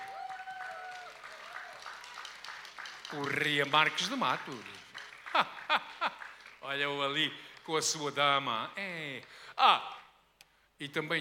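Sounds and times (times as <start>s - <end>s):
audience applause: 0.0s - 6.8s
speech: 3.1s - 4.8s, 6.7s - 10.0s, 10.8s - 11.2s.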